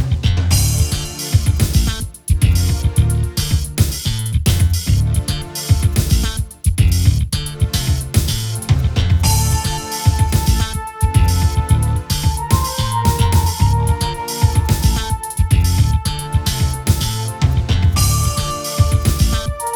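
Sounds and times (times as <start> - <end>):
dungeon background music: 0.1 - 19.7.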